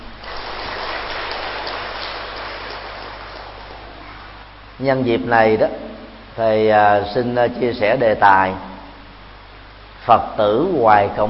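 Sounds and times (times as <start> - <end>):
audience applause: 0.2 - 3.9
speech: 4.8 - 8.7, 10.0 - 11.2.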